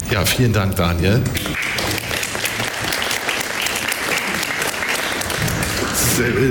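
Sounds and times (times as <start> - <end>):
speech: 0.1 - 1.6, 6.2 - 6.5
crowd applause: 1.4 - 6.5.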